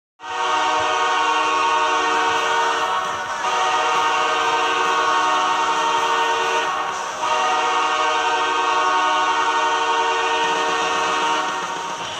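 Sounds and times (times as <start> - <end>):
goal horn: 0.2 - 12.1.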